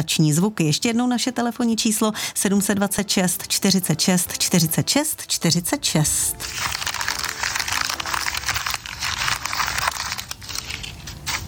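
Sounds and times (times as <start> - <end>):
speech: 0.0 - 6.9
cabbage leaves rustling: 6.3 - 11.4.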